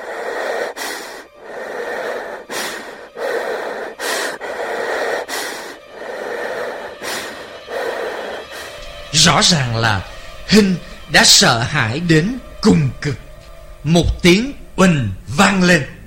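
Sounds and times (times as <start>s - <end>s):
heavy breathing: 0.0s - 9.1s, 9.8s - 11.1s
speech: 9.2s - 13.2s, 13.8s - 15.9s.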